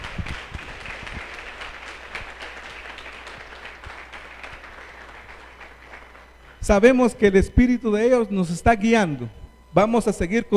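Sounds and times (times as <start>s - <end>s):
audience applause: 0.0s - 6.4s
speech: 6.7s - 10.5s.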